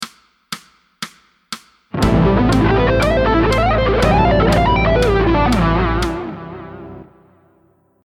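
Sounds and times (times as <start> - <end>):
musical lick: 2.0 - 7.4.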